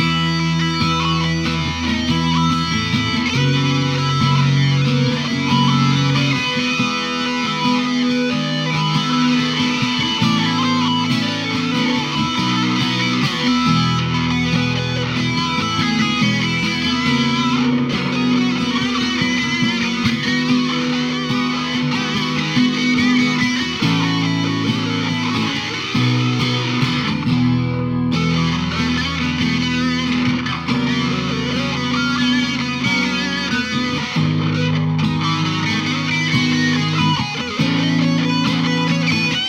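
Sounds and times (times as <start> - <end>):
guitar improvisation: 0.0 - 39.4.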